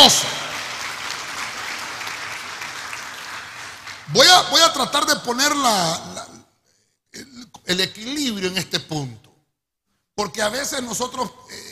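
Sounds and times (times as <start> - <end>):
audience clapping: 0.0 - 4.6
speech: 4.1 - 6.2, 7.7 - 9.2, 10.2 - 11.6.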